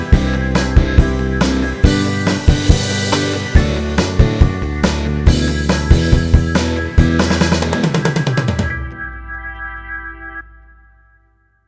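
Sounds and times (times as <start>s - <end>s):
90s rock music: 0.0s - 10.8s.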